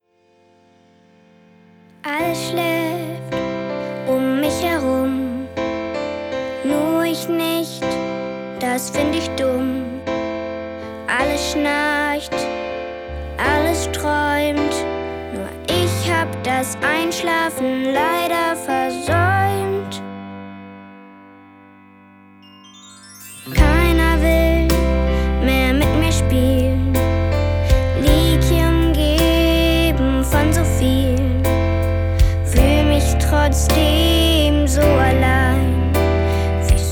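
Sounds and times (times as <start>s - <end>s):
girl singing songs: 2.0s - 5.6s, 6.4s - 10.1s, 10.9s - 12.5s, 13.3s - 20.2s, 23.5s - 36.9s.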